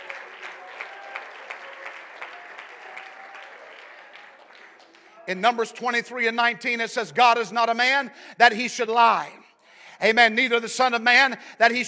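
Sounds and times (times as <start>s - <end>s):
audience clapping hands: 0.0s - 5.6s
speech: 5.3s - 9.4s, 10.0s - 11.8s.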